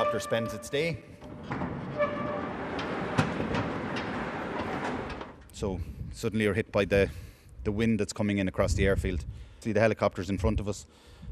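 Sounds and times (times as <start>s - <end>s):
speech: 0.0s - 1.6s, 5.6s - 11.3s
large hangar doors opening: 0.0s - 5.6s.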